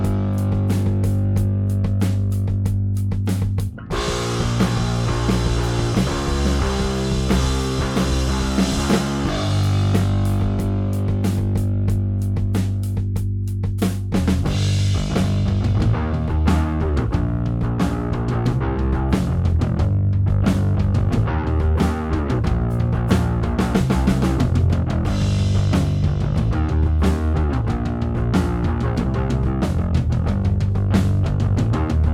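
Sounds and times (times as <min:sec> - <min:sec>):
bass: 0:00.0 - 0:32.1
drums: 0:00.0 - 0:32.1.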